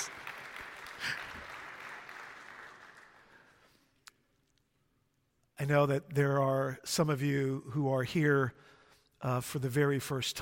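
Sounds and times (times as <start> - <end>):
audience applause: 0.0 - 3.5
speech: 5.6 - 10.3.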